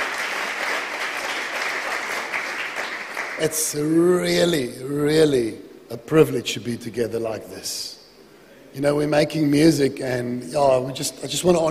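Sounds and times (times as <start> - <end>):
audience clapping: 0.0 - 3.8
speech: 3.4 - 8.0, 8.7 - 11.7.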